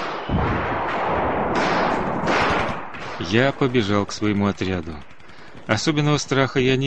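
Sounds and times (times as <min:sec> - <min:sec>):
rifle gunfire from trenches at night: 0:00.0 - 0:06.8
bullets whistling and whining: 0:01.7 - 0:06.8
speech: 0:03.2 - 0:06.8.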